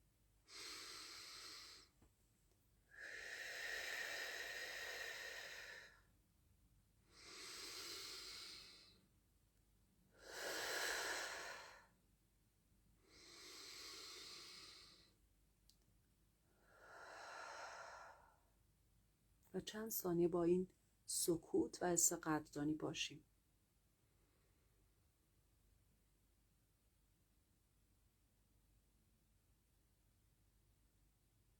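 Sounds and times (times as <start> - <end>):
deep belly breathing during a guided relaxation exercise: 0.5 - 1.9, 3.0 - 6.0, 7.1 - 9.0, 10.2 - 11.9, 13.0 - 15.1, 16.5 - 18.5
speech: 19.6 - 23.3.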